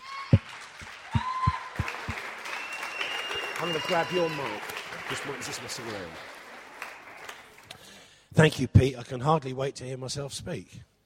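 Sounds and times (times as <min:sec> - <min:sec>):
audience applause in a room: 0:00.0 - 0:08.0
speech: 0:03.6 - 0:06.3, 0:08.4 - 0:10.9.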